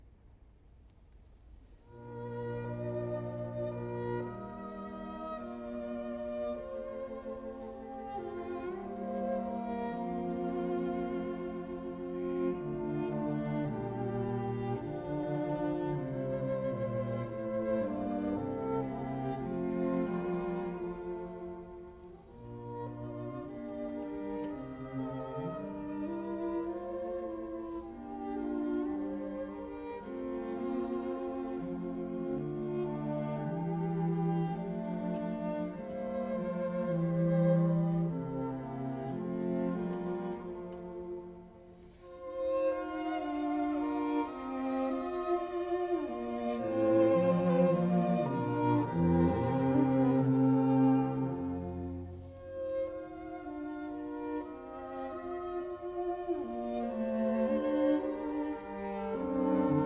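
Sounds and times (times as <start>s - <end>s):
string quartet playing a slow andante cantabile movement: 1.3s - 59.8s.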